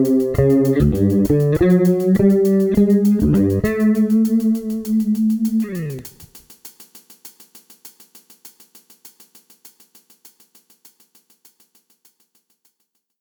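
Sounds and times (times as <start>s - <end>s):
phaser effect: 0.4s - 6.3s.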